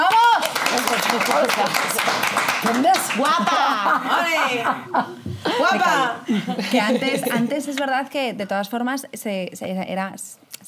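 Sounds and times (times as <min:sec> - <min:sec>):
applause: 0:00.0 - 0:03.5
speech: 0:01.1 - 0:10.4
laughter: 0:03.1 - 0:07.6.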